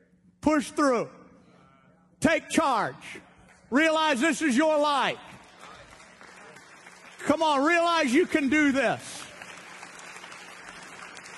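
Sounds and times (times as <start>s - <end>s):
speech: 0.5s - 1.2s, 2.2s - 5.3s, 7.2s - 9.2s
audience clapping: 3.8s - 11.3s.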